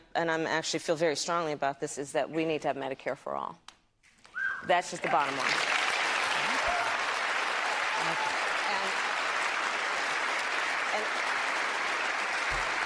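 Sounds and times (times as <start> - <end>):
speech: 0.2 - 3.7, 4.6 - 5.7
audience applause: 5.1 - 12.8.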